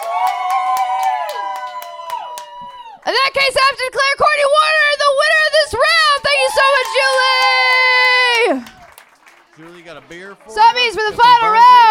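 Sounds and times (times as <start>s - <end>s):
sharp claps: 0.0s - 2.8s, 6.7s - 11.4s
audience cheering: 0.0s - 3.2s, 4.7s - 11.8s
speech: 3.3s - 5.0s, 9.6s - 11.8s.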